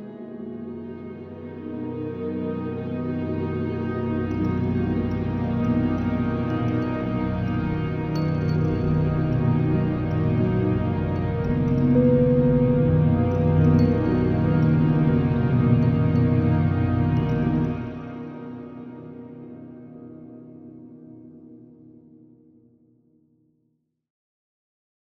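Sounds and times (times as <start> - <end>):
improvised music: 0.0 - 19.2.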